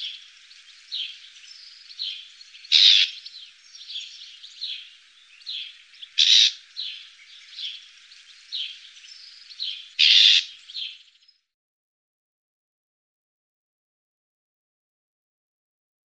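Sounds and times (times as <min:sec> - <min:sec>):
Eurasian reed warbler giving a rapid churring song of grating notes: 0:00.0 - 0:11.5.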